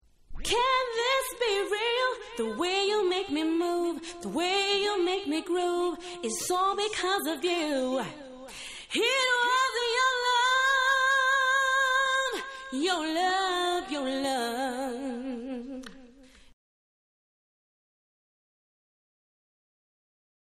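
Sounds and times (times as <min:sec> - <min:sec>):
a cappella singing: 0:00.4 - 0:16.3.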